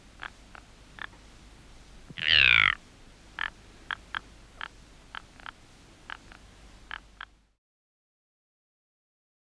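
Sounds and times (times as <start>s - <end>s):
ptarmigan calling: 0.0s - 7.4s.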